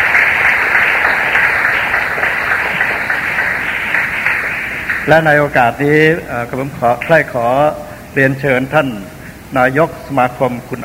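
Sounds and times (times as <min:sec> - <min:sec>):
audience applause: 0:00.0 - 0:05.4
speech: 0:05.1 - 0:10.8.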